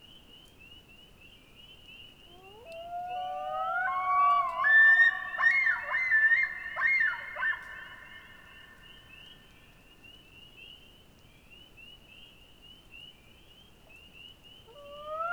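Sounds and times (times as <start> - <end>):
common loon wail in the Boundary Waters: 2.4 - 8.2.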